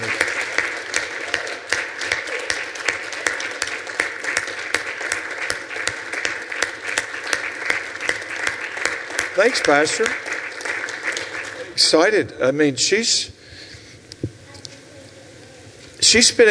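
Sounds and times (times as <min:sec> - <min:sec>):
audience applause: 0:00.0 - 0:12.2
speech: 0:09.4 - 0:10.3, 0:11.8 - 0:13.4, 0:16.1 - 0:16.4.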